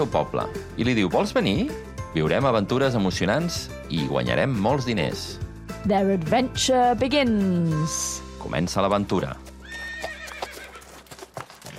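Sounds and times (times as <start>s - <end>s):
speech: 0.0s - 9.5s
horse hooves clip-clopping: 8.8s - 11.7s
horse neighing: 9.6s - 11.1s.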